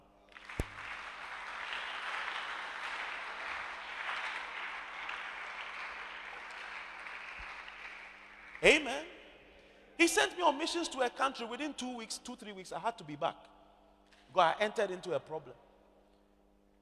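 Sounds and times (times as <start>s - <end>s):
audience clapping: 0.3s - 8.9s
speech: 8.6s - 9.1s, 10.0s - 13.6s, 14.3s - 15.7s.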